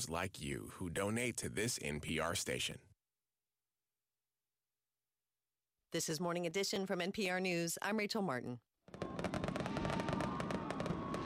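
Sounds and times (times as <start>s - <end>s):
speech: 0.0s - 2.9s, 5.9s - 9.0s
New Year fireworks banging and crackling: 8.9s - 11.2s.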